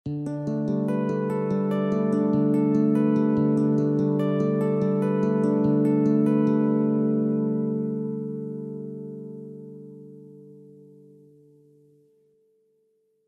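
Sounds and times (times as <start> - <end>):
electro arpeggio: 0.1 - 9.9.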